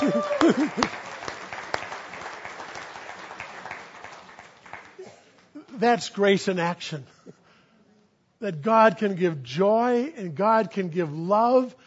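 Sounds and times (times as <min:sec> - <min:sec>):
speech: 0:00.0 - 0:01.0, 0:05.8 - 0:07.1, 0:08.4 - 0:11.8
audience round of applause: 0:00.0 - 0:05.0.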